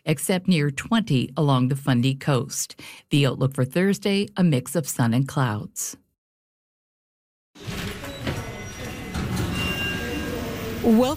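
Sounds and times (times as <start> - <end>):
speech: 0.1 - 6.0, 10.8 - 11.1
elevator at the Resistance and Deportation History Center in France: 7.6 - 11.1.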